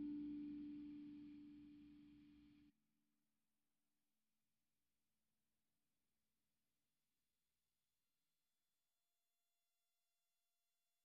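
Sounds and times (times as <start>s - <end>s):
melody: 0.0s - 1.2s.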